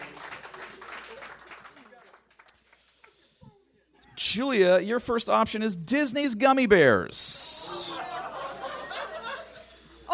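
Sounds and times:
audience clapping hands: 0.0 - 3.2
speech: 4.2 - 7.5
laughter: 7.6 - 10.0.

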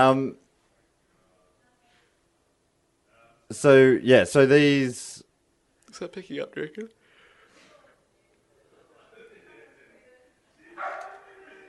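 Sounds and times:
speech: 0.0 - 0.4, 3.5 - 5.2, 5.9 - 7.0
dog barking: 10.8 - 11.3.

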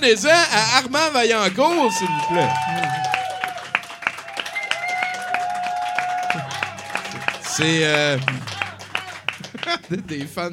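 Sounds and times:
speech: 0.0 - 3.1, 7.6 - 8.5, 9.9 - 10.5
audience applause: 0.0 - 10.5
laughter: 6.2 - 10.5.

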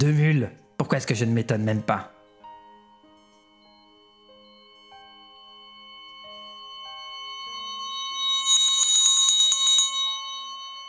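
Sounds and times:
speech: 0.0 - 2.2
small bell ringing at a card table: 8.2 - 10.8.

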